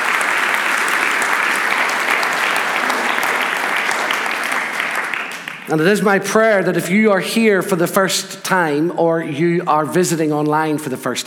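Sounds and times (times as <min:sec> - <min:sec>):
audience clapping: 0:00.0 - 0:06.2
speech: 0:05.7 - 0:11.2.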